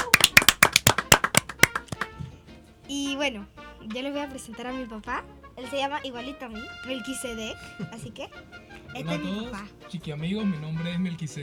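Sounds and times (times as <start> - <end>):
audience clapping: 0.0 - 2.2
speech: 2.9 - 11.4.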